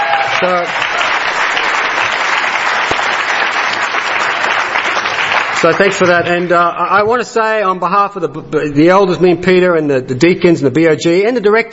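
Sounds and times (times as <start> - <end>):
audience applause: 0.0 - 6.5
speech: 0.4 - 0.8, 5.6 - 11.7.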